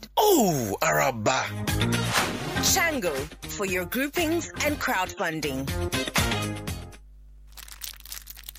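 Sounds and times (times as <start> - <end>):
speech: 0.4 - 6.7
crunch of biting a Munchy Milk Shortcake biscuit: 7.4 - 8.5.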